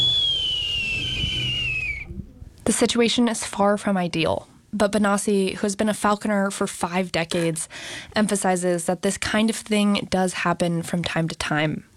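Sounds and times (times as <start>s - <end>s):
captive bird of prey warning call: 0.0s - 2.2s
low steady rumble: 0.0s - 3.0s
speech: 2.7s - 11.9s.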